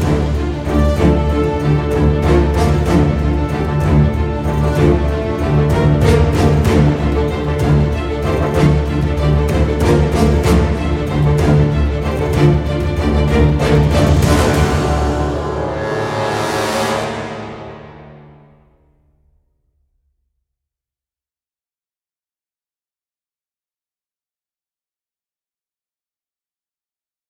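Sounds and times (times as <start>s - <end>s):
dark music track at 190 bpm: 0.0s - 19.2s.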